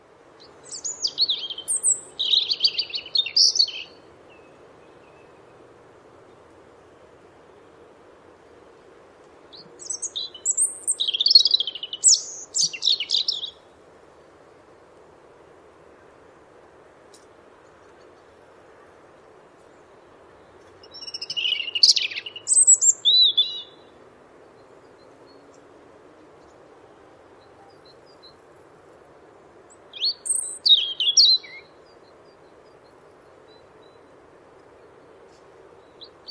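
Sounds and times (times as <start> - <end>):
European robin singing: 0.4 - 5.6, 9.5 - 13.7, 19.7 - 25.8, 29.7 - 36.3.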